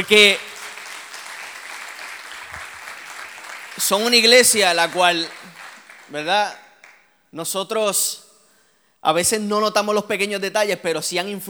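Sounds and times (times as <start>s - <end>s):
speech: 0.0s - 0.5s, 3.8s - 5.5s, 6.1s - 6.6s, 7.3s - 8.2s, 9.0s - 11.4s
audience applauding: 0.0s - 7.0s.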